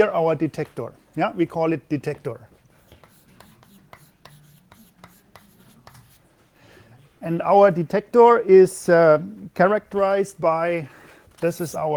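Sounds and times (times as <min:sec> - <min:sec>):
speech: 0:00.0 - 0:02.5, 0:07.2 - 0:11.9
pen strokes on a board as a lecturer draws a detector diagram: 0:02.8 - 0:06.3.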